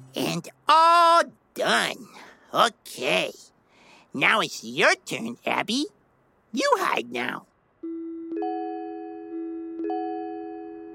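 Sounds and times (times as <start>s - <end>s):
speech: 0.2s - 3.5s, 4.1s - 7.5s
timer two-note ding-dong chime: 7.8s - 10.9s.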